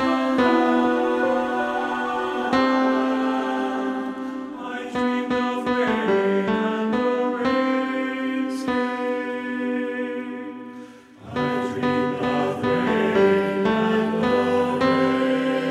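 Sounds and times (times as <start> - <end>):
tenor singing: 0.0 - 15.6.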